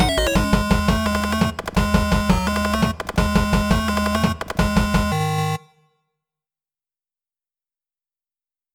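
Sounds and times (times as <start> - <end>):
chiptune kit sounds: 0.0 - 5.8.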